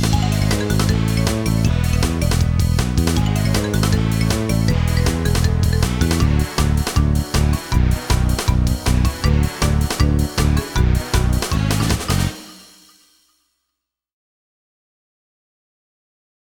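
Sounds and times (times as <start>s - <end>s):
race win fanfare: 0.1s - 13.1s.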